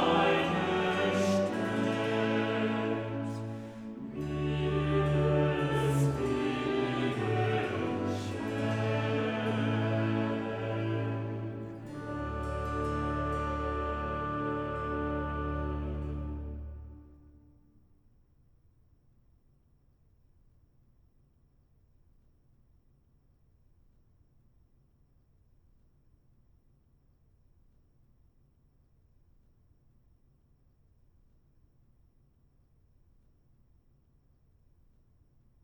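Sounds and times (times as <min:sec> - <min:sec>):
chorale: 0:00.0 - 0:17.5.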